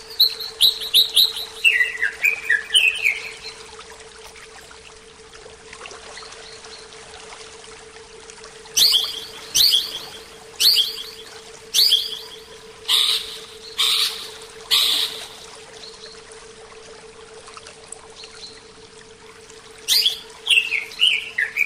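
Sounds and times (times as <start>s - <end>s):
Oriental magpie-robin singing a soft rambling series of whistled notes: 0.0s - 3.4s, 8.8s - 15.2s, 19.9s - 21.6s.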